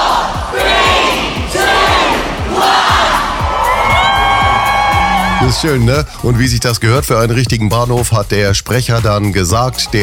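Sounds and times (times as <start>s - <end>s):
thousands of fans cheering at countdown: 0.0s - 6.0s
low thumps: 0.0s - 6.2s
speech: 5.4s - 10.0s.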